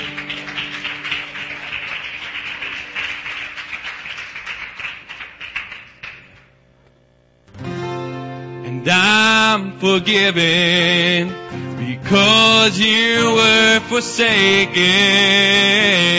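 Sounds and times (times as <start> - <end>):
audience applause: 0.0 - 6.5
speech: 8.9 - 16.1.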